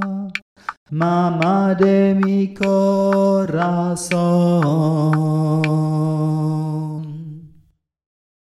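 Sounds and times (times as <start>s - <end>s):
man singing a traditional Mexican air in baritone from Tehuantepec: 0.0s - 7.6s.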